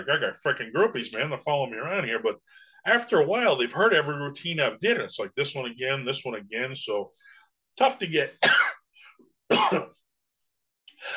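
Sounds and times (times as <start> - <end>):
speech: 0.0 - 8.6, 9.5 - 10.0
person coughing: 8.4 - 8.9, 9.5 - 10.0.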